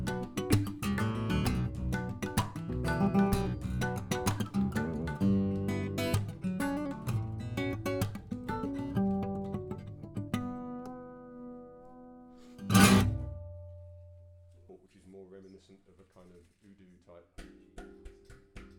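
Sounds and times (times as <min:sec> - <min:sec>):
acoustic guitar: 0:00.0 - 0:14.6.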